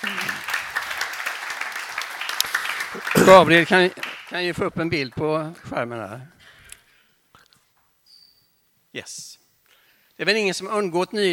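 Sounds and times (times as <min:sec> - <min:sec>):
audience applause: 0:00.0 - 0:05.5
speech: 0:03.0 - 0:06.4, 0:09.0 - 0:09.4, 0:10.2 - 0:11.3.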